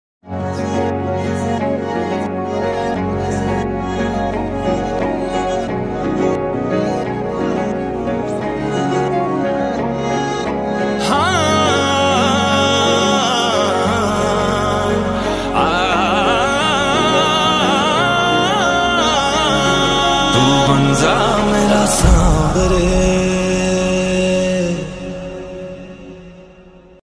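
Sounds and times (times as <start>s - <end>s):
background music: 0.2s - 27.0s.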